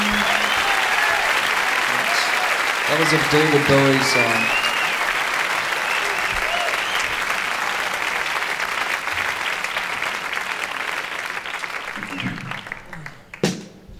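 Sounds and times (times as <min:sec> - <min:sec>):
audience applause: 0:00.0 - 0:13.6
speech: 0:02.9 - 0:04.6.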